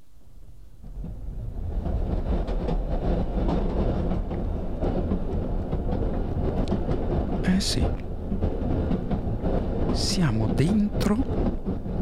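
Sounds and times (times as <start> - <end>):
old noisy moving train rumbling and rattling inside a carriage: 0.5 - 12.0
speech: 7.6 - 8.1, 10.0 - 11.6.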